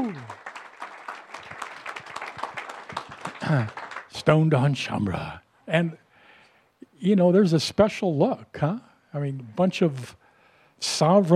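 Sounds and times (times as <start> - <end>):
person cheering: 0.0 - 0.4
audience applause: 0.0 - 4.3
speech: 3.5 - 6.0, 7.0 - 10.2, 10.8 - 11.3.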